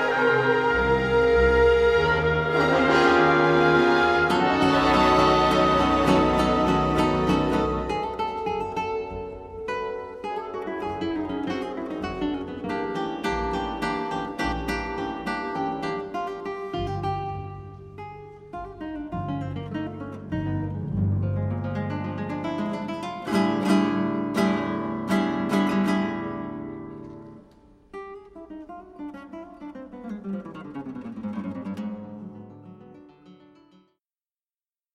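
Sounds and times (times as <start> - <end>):
concerto for two guitars: 0.0 - 33.9.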